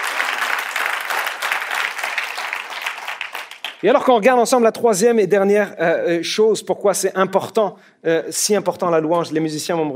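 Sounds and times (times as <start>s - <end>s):
audience applause: 0.0s - 3.8s
speech: 3.8s - 9.9s.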